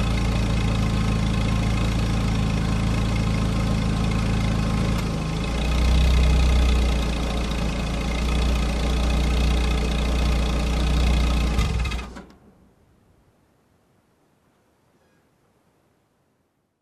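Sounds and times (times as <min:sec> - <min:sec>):
old car approaching and parking: 0:00.0 - 0:12.6.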